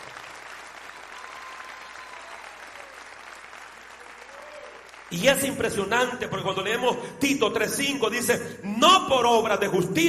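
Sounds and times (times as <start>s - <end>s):
audience applause: 0.0s - 5.5s
speech: 5.1s - 10.0s.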